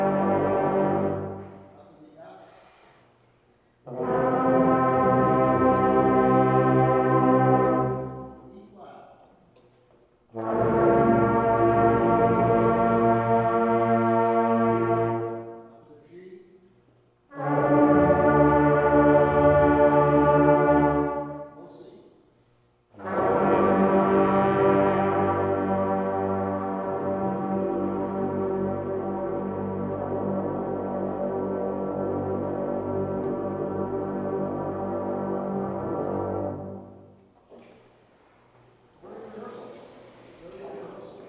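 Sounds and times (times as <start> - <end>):
brass music: 0.0 - 1.9, 3.8 - 8.6, 10.2 - 15.8, 17.2 - 21.7, 22.9 - 37.2.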